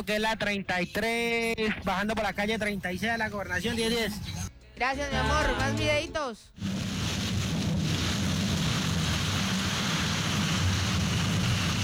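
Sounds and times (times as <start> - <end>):
speech: 0.0 - 6.7
heavy rain shower: 6.6 - 11.8.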